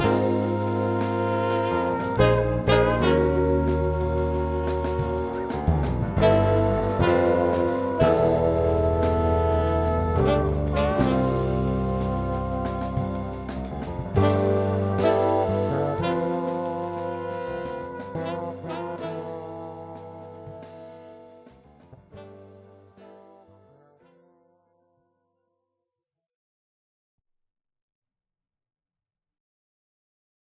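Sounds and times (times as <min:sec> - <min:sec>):
slow jazz: 0:00.0 - 0:24.2.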